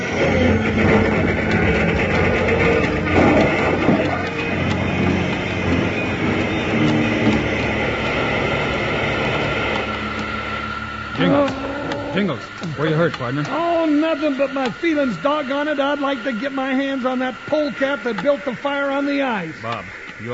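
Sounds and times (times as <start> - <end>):
hissing and rattling metal: 0.0 - 12.6
train engine roaring in a steady rumble: 0.0 - 20.3
speech: 12.8 - 20.3.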